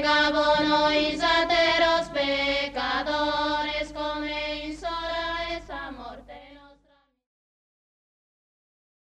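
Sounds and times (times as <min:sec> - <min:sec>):
canto a tenore polyphonic group singing: 0:00.0 - 0:07.0.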